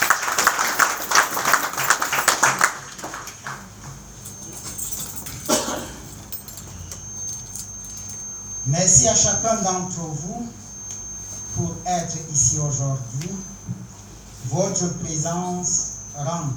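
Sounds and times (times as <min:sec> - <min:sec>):
audience applause: 0:00.0 - 0:03.9
speech: 0:08.7 - 0:10.6, 0:11.6 - 0:13.5, 0:14.5 - 0:16.5.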